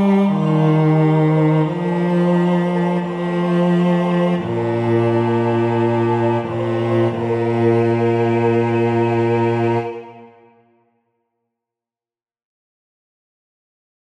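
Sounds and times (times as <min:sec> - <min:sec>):
bass: 0:00.0 - 0:10.1.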